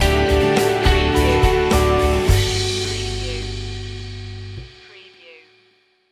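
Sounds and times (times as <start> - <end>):
feelgood morning music stinger: 0.0 - 4.4.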